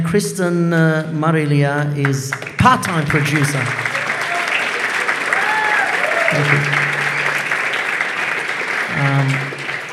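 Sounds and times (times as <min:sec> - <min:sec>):
speech: 0:00.1 - 0:03.9, 0:06.3 - 0:06.8
audience applause: 0:02.3 - 0:09.9.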